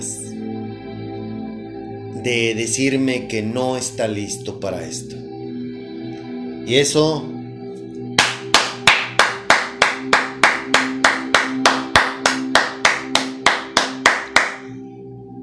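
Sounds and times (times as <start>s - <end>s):
speech: 2.2s - 5.2s, 6.7s - 7.4s
hand clapping: 8.2s - 14.8s.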